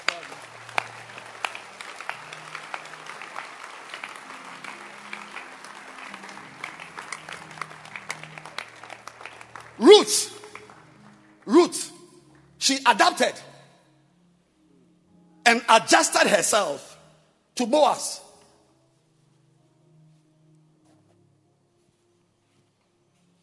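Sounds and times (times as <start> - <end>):
audience clapping: 0.0 - 13.4
speech: 9.8 - 10.4, 11.5 - 11.9, 12.7 - 13.5, 15.5 - 16.9, 17.6 - 18.2.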